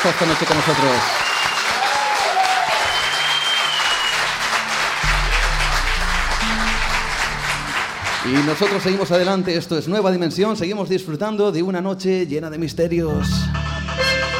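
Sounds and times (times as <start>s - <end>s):
speech: 0.0s - 1.2s, 8.2s - 13.6s
audience applause: 0.0s - 9.5s.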